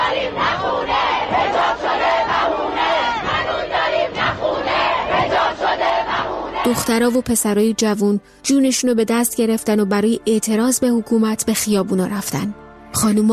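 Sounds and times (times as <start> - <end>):
large protest crowd shouting and chanting: 0.0 - 7.2
speech: 6.7 - 13.3.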